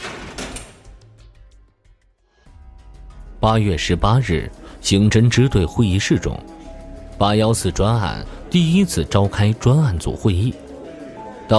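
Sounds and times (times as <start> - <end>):
heavy iron cell door slamming shut: 0.0 - 1.0
speech: 3.4 - 6.6, 7.2 - 10.6.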